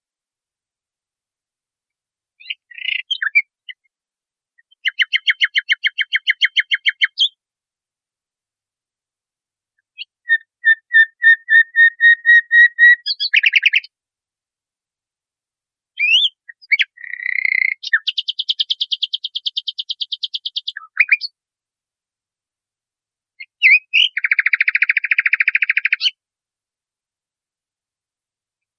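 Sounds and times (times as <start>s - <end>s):
nightingale singing: 2.4s - 3.9s, 4.6s - 7.4s, 9.8s - 13.9s, 16.0s - 21.4s, 23.4s - 26.2s.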